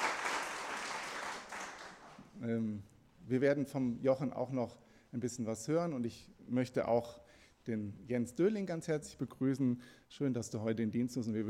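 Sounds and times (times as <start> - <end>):
audience applause at a church gathering: 0.0 - 2.2
speech: 2.4 - 11.4.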